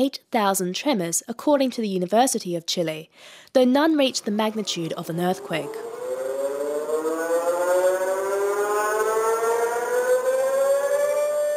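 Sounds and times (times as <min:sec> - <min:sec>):
speech: 0:00.0 - 0:05.9
tsunami warning civil defense siren in Chile: 0:04.1 - 0:11.5.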